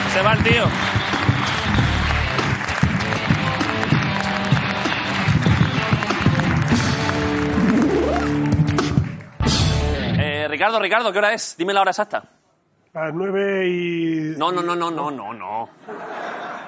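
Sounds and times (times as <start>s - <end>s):
audience applause: 0.0s - 9.4s
speech: 0.2s - 1.1s, 10.6s - 12.4s, 13.0s - 16.3s
laughter: 15.7s - 16.6s.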